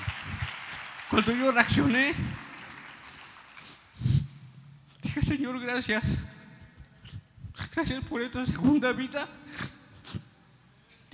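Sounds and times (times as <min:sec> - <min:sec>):
audience applauding: 0:00.0 - 0:04.0
speech: 0:01.1 - 0:02.4, 0:05.3 - 0:06.3, 0:07.8 - 0:09.4.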